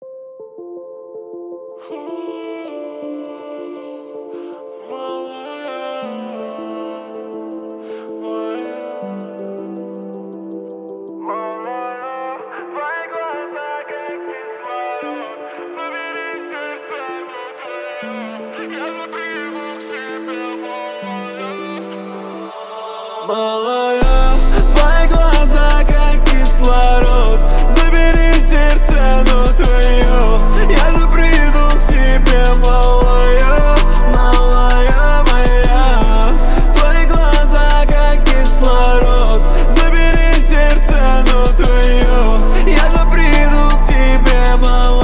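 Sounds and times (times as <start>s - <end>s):
low bass tones at 28 29 and 31 Hz: 24.0s - 45.0s.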